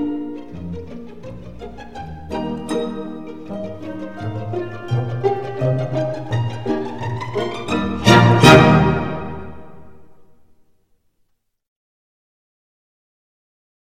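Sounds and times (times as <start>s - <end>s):
pizzicato strings: 0.0s - 10.3s.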